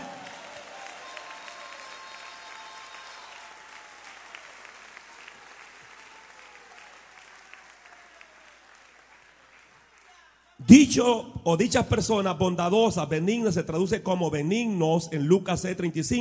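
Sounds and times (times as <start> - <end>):
audience applause: 0.0 - 10.2
speech: 10.6 - 16.2.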